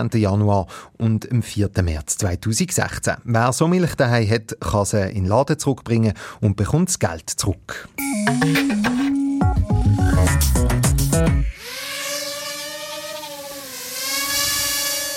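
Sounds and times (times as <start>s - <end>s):
speech: 0.0s - 11.8s
multicopter drone propellers buzzing: 11.1s - 15.1s.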